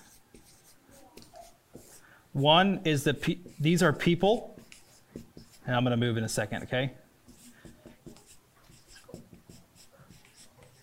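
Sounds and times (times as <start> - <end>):
faint writing by hand with scratchy strokes and light squeaks: 0.0 - 2.0, 3.4 - 5.7, 7.3 - 10.8
speech: 2.4 - 4.5, 5.7 - 7.0.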